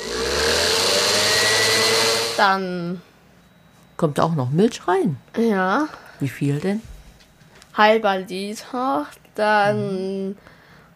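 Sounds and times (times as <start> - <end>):
electric kitchen mixer mixing batter: 0.0 - 2.5
speech: 2.4 - 3.1, 4.0 - 6.9, 7.8 - 10.5.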